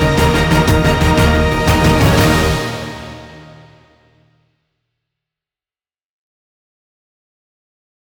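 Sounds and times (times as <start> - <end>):
combat sounds: 0.0 - 3.8.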